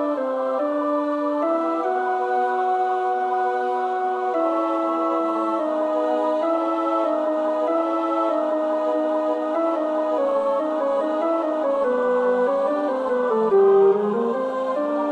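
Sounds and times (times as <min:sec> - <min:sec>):
tenor singing Christmas choral piece: 0:00.0 - 0:15.1.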